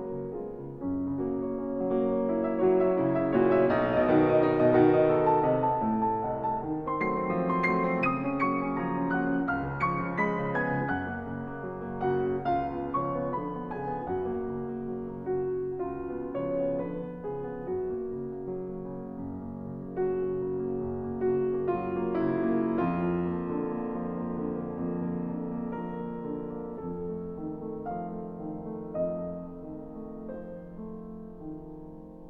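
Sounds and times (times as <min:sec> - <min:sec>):
classical piano impromptu in B-flat: 0:00.0 - 0:32.2.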